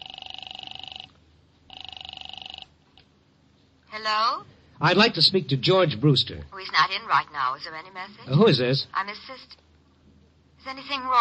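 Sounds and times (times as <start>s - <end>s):
telephone ringing on the other end: 0.0s - 3.0s
speech: 4.0s - 9.6s, 10.6s - 11.1s.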